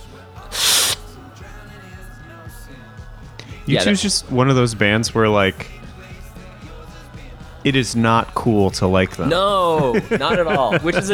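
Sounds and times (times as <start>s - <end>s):
static effect in song breakdown: 0.5s - 1.1s
speech: 3.7s - 5.8s, 7.6s - 11.1s
laughter: 7.7s - 11.1s.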